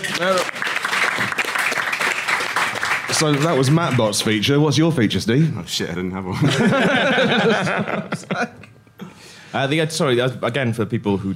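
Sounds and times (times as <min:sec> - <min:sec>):
round of applause: 0:00.0 - 0:04.4
speech: 0:00.2 - 0:00.7, 0:03.2 - 0:08.7, 0:09.5 - 0:11.3
laughter: 0:06.3 - 0:08.8.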